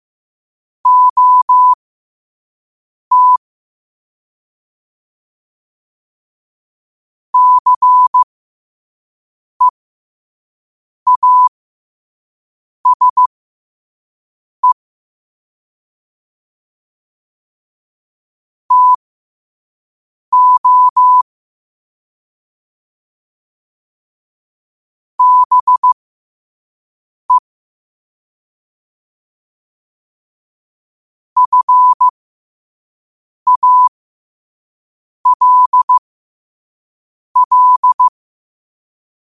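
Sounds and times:
morse code at 5 wpm: 0:00.9 - 0:01.8, 0:03.1 - 0:03.4, 0:07.4 - 0:08.2, 0:11.1 - 0:11.5, 0:12.9 - 0:13.3, 0:18.7 - 0:19.0, 0:20.3 - 0:21.2, 0:25.2 - 0:26.0, 0:31.4 - 0:32.1, 0:33.5 - 0:33.9, 0:35.3 - 0:36.0, 0:37.4 - 0:38.1.

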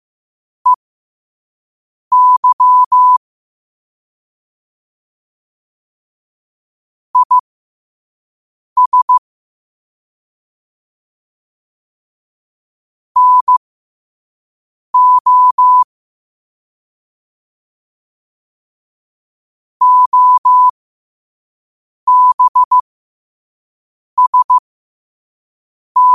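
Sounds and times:
morse code at 5 wpm: 0:02.1 - 0:03.2, 0:07.2 - 0:07.4, 0:08.8 - 0:09.2, 0:13.2 - 0:13.6, 0:15.0 - 0:15.9, 0:19.8 - 0:20.7, 0:22.1 - 0:22.8, 0:24.2 - 0:24.6, 0:26.0 - 0:26.1.

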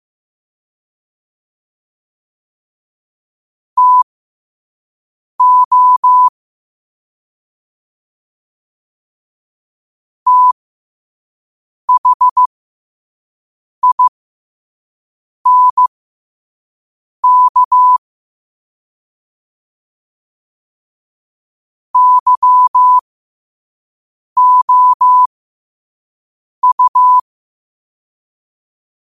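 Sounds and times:
morse code at 5 wpm: 0:03.8 - 0:04.0, 0:05.4 - 0:06.3, 0:10.3 - 0:10.6, 0:11.9 - 0:12.5, 0:13.8 - 0:14.1, 0:15.5 - 0:15.9, 0:17.2 - 0:18.0, 0:22.0 - 0:23.0, 0:24.4 - 0:25.3, 0:26.6 - 0:27.2.

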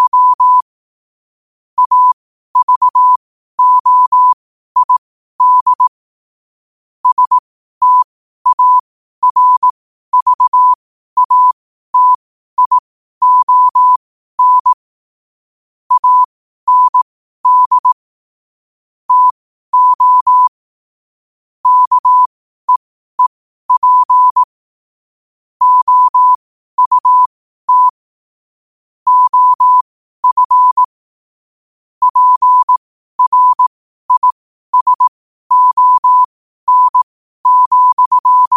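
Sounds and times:
morse code at 5 wpm: 0:00.0 - 0:00.7, 0:01.8 - 0:05.9, 0:07.0 - 0:14.8, 0:15.9 - 0:18.0, 0:19.1 - 0:20.6, 0:21.6 - 0:24.5, 0:25.6 - 0:28.0, 0:29.1 - 0:30.9, 0:32.0 - 0:38.5.

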